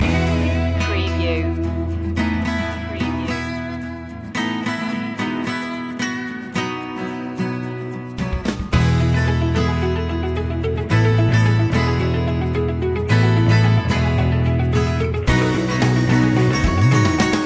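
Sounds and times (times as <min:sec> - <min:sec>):
motivational music loop: 0:00.0 - 0:17.4.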